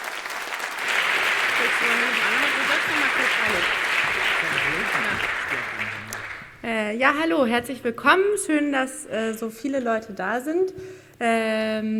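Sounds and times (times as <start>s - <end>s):
audience applause: 0.0s - 6.6s
speech: 6.6s - 11.9s.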